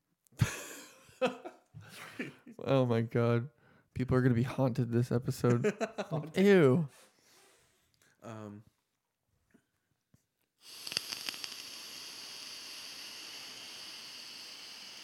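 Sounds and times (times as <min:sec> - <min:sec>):
laughter: 0:00.4 - 0:02.6, 0:05.4 - 0:06.3
speech: 0:01.2 - 0:01.4, 0:02.2 - 0:07.1, 0:08.2 - 0:08.7
powerful inhale from a vape set to 60 watts: 0:10.6 - 0:15.0.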